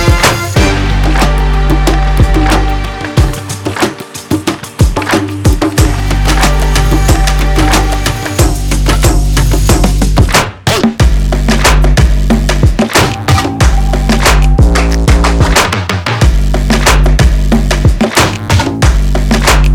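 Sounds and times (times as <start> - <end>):
drum percussion beat: 0.0 - 19.7.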